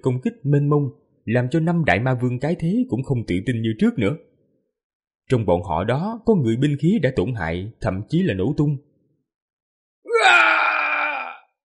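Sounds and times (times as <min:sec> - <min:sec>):
speech: 0:00.0 - 0:04.3, 0:05.3 - 0:08.9, 0:10.2 - 0:10.6
defiant anguished roar: 0:10.1 - 0:11.5.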